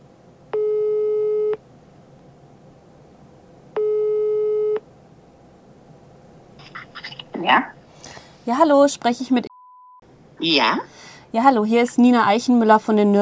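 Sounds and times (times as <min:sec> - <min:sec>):
hiss: 0:00.0 - 0:13.2
telephone ringing tone: 0:03.8 - 0:04.8
speech: 0:07.4 - 0:07.8, 0:08.5 - 0:09.5, 0:10.4 - 0:13.2.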